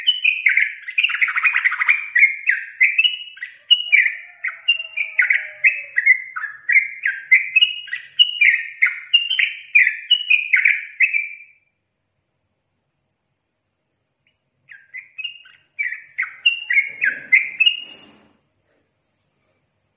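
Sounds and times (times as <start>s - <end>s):
Yellow-vented bulbul song: 0.0s - 11.7s, 14.2s - 18.3s.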